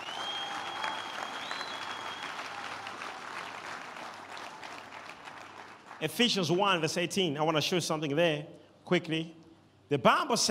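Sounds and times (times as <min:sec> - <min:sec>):
audience clapping hands: 0:00.0 - 0:06.8
speech: 0:06.0 - 0:10.5.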